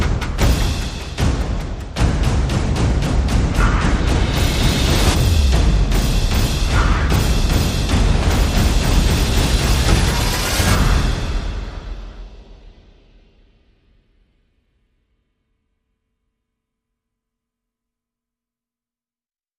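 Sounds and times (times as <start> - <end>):
percussion: 0.0 - 15.0.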